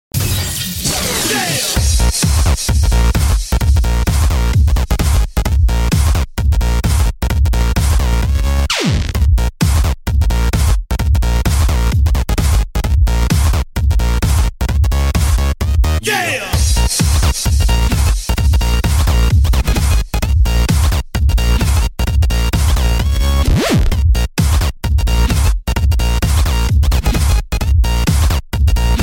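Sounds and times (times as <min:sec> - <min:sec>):
bass: 0:00.1 - 0:29.0
person shouting yeah: 0:16.0 - 0:16.6.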